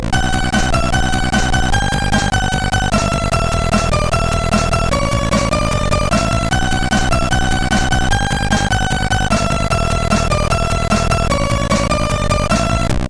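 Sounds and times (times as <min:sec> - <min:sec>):
fast loader sound on SID MOS6581 chip: 0:00.1 - 0:13.0.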